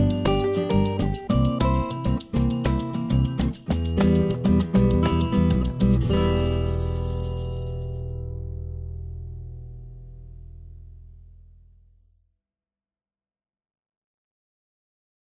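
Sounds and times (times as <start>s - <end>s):
sunshine latin samba instrumental: 0.0s - 8.2s.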